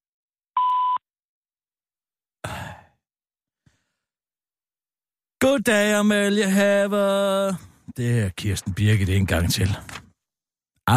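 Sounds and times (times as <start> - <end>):
answering machine beep tone: 0.6 - 1.0
speech: 5.4 - 10.0.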